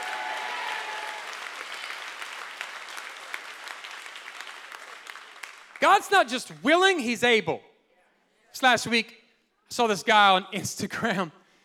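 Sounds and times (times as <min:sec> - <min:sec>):
audience clapping hands: 0:00.0 - 0:06.7
speech: 0:05.8 - 0:07.7, 0:08.5 - 0:11.4.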